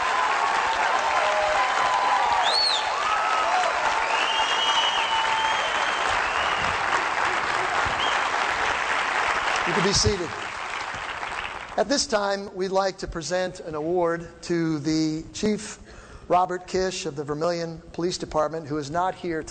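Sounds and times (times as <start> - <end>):
whistles and cheers: 0.0 - 7.0, 7.8 - 8.4
crowd applause: 0.0 - 11.8
speech: 9.8 - 10.4, 11.8 - 19.5.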